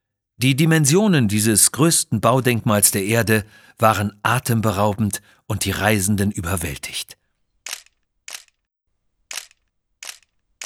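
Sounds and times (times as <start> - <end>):
speech: 0.4 - 7.2
camera shutter clicks at the Great Wall of China: 7.7 - 8.5, 9.3 - 10.6.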